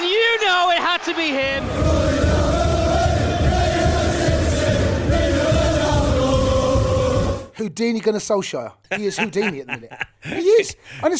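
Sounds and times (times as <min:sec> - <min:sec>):
football stadium crowd cheering a goal: 0:00.0 - 0:07.5
speech: 0:07.6 - 0:11.1
laughter: 0:08.9 - 0:10.8.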